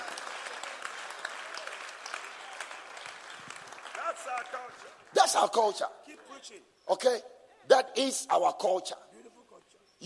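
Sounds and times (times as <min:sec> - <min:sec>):
crowd clapping: 0:00.0 - 0:05.8
speech: 0:04.6 - 0:09.0.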